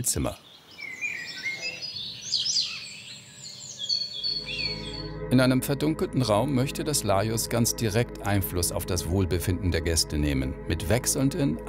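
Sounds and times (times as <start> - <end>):
speech: 0.0 - 0.6, 5.3 - 11.6
various bird calls in a building: 0.0 - 5.2.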